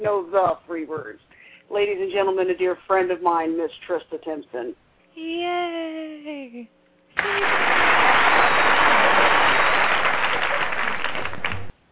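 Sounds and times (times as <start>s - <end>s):
speech: 0.0s - 9.5s
audience applause: 7.2s - 11.7s.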